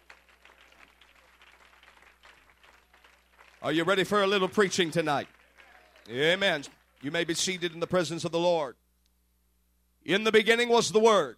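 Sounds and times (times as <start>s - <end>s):
audience clapping hands: 0.0s - 7.8s
speech: 3.6s - 5.4s, 6.1s - 8.8s, 10.0s - 11.3s.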